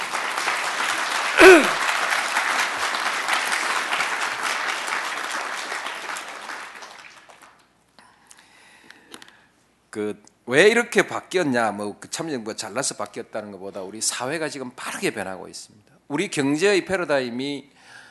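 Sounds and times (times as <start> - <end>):
audience applause: 0.0 - 7.6
speech: 10.0 - 17.8.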